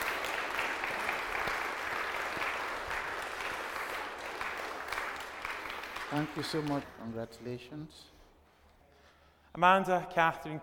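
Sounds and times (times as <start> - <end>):
round of applause: 0.0 - 7.2
speech: 6.1 - 8.2, 9.6 - 10.6.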